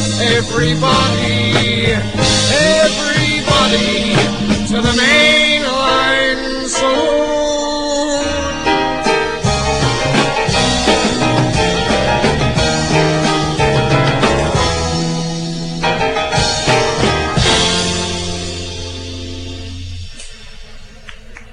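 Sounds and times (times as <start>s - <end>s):
song: 0.0s - 21.5s
speech: 0.2s - 7.2s.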